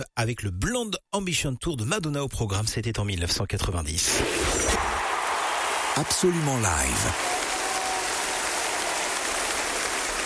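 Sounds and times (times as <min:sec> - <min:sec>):
speech: 0:00.0 - 0:05.0, 0:06.0 - 0:07.4
concert audience applauding: 0:04.8 - 0:10.2.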